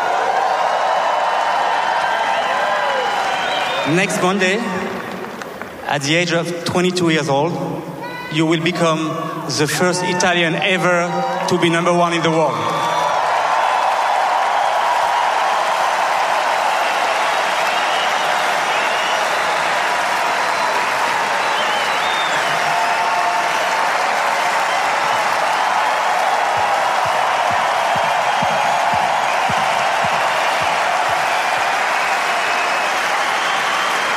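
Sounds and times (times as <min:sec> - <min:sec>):
scattered cheers and shouts: 0:00.0 - 0:05.6, 0:07.8 - 0:34.1
large crowd applauding: 0:00.0 - 0:06.1, 0:11.2 - 0:34.1
speech: 0:03.9 - 0:05.1, 0:05.9 - 0:12.8.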